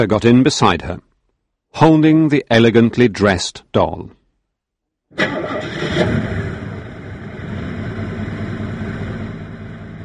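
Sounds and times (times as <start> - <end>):
speech: 0.0 - 1.1, 1.7 - 4.2, 5.1 - 6.4
car engine starting and car reversing to turn around: 5.2 - 10.0.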